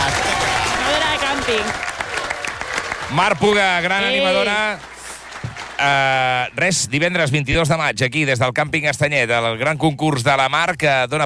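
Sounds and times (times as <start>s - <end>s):
voices cheering: 0.0s - 6.3s
audience applause at a campsite contest evening: 0.0s - 6.8s
speech: 1.5s - 1.9s, 3.1s - 4.9s, 5.8s - 11.2s.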